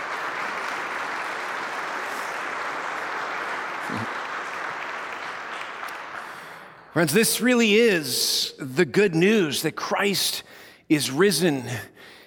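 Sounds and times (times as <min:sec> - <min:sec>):
audience applause: 0:00.0 - 0:06.9
speech: 0:03.9 - 0:04.2, 0:07.0 - 0:12.1.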